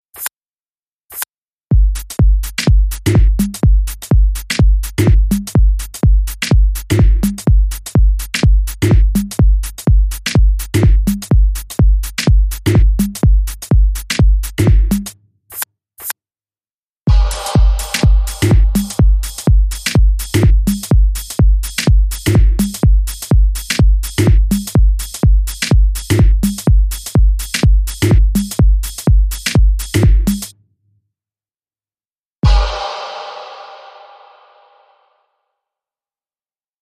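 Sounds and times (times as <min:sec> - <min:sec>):
beat: 0:01.7 - 0:15.1, 0:17.1 - 0:30.5, 0:32.4 - 0:34.9.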